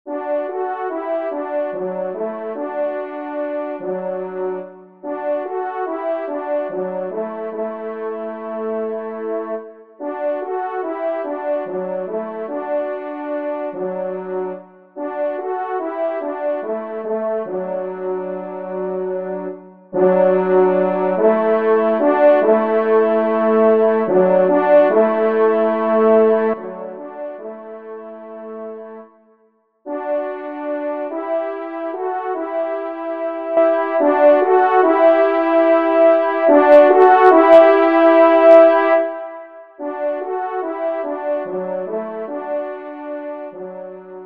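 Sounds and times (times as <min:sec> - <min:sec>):
horn: 0:00.1 - 0:44.2.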